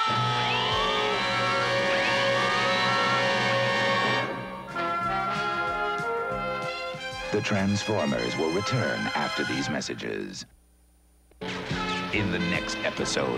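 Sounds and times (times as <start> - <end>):
alarm siren: 0.0 - 6.8
speech: 7.3 - 10.6, 12.1 - 13.3.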